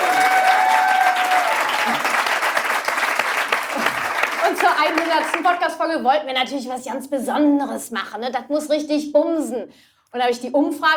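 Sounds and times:
audience applause: 0.0 - 5.6
speech: 4.8 - 10.9.

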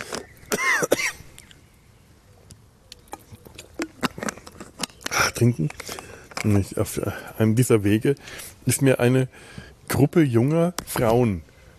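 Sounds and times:
person coughing after choking on something swallowed: 0.5 - 1.2
speech: 5.4 - 11.5.

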